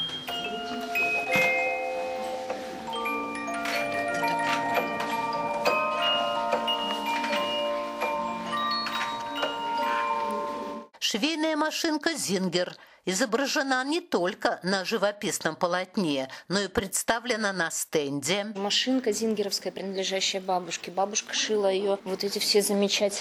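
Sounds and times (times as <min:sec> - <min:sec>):
antique working music box melody: 0:00.0 - 0:11.0
speech: 0:11.1 - 0:23.2.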